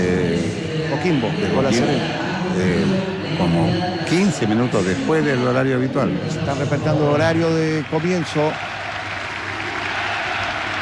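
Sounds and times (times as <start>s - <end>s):
speech: 1.0s - 8.7s
Unión La Calera football fans clapping in a stadium during a minute of tribute: 6.8s - 10.8s.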